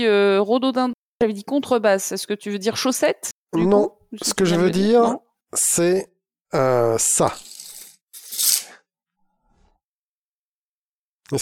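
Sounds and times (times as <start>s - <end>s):
speech: 0.0s - 7.5s, 11.3s - 11.4s
tape measure being pulled out: 7.4s - 8.8s.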